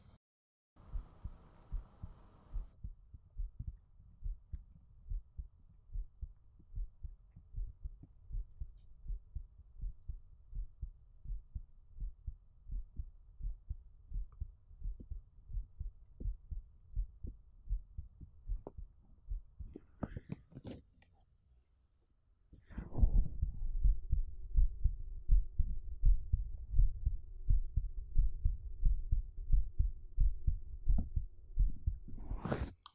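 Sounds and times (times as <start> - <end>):
heartbeat: 0.8 - 20.4, 22.7 - 32.7.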